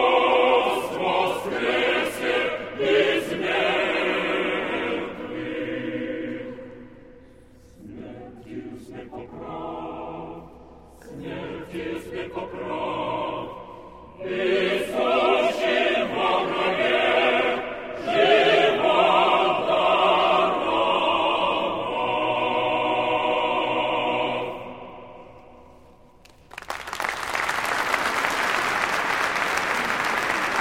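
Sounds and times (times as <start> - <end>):
polyphonic choir singing: 0.0 - 26.0
crowd applauding: 26.2 - 30.6.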